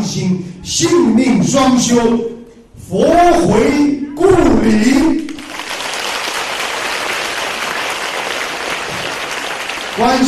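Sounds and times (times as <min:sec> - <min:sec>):
speech: 0:00.2 - 0:02.3, 0:02.9 - 0:05.2, 0:10.0 - 0:10.2
audience applause: 0:05.3 - 0:10.2.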